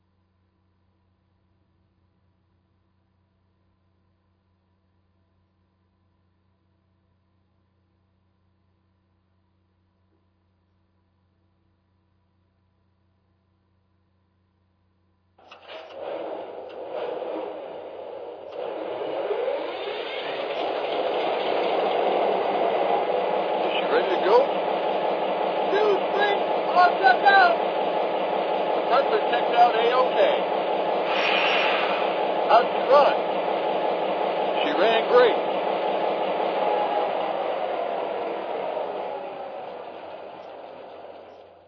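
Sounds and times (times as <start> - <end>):
GP40 diesel locomotive: 15.4 - 41.6.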